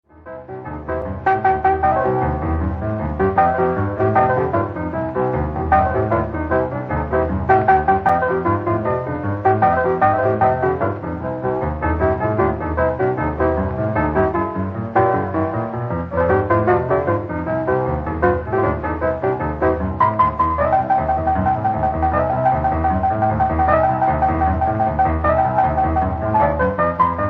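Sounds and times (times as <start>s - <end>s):
blues boogie woogie piano: 0.0s - 27.2s.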